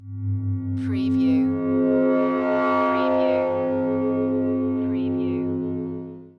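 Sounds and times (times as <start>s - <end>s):
sci-fi space scare sound: 0.0s - 6.3s.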